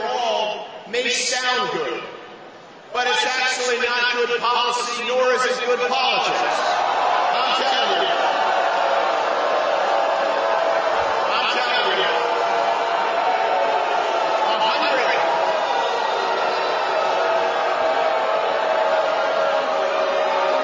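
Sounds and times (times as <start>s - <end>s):
speech: 1.0s - 2.2s, 2.9s - 8.2s
debate audience booing: 6.2s - 20.6s.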